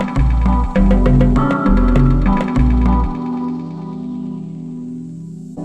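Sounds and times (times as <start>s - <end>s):
drum kit playing: 0.0s - 3.9s.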